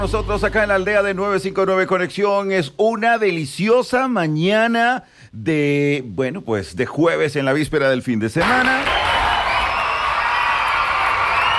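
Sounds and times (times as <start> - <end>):
speech: 0.0 - 9.0
crowd applause: 8.4 - 11.5
cheering and whoops: 8.7 - 11.5.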